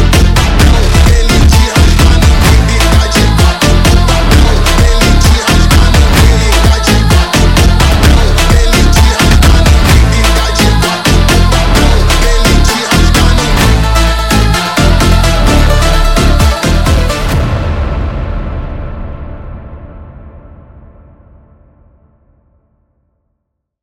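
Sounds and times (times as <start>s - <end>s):
sped up funk music: 0.0s - 17.6s.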